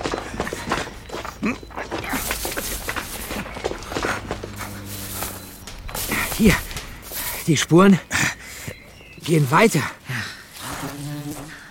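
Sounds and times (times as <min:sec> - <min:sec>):
low hum: 0:00.0 - 0:09.2
footsteps of a group pushing into bushes: 0:00.0 - 0:11.6
rustling of bushes: 0:00.0 - 0:11.6
speech: 0:01.4 - 0:01.8, 0:06.4 - 0:06.6, 0:07.5 - 0:08.2, 0:09.3 - 0:10.0.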